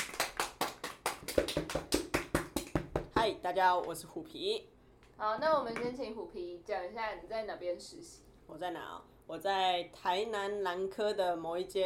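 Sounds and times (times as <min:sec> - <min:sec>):
applause welcoming a guest: 0:00.0 - 0:03.0
speech: 0:01.4 - 0:02.0, 0:03.2 - 0:11.8.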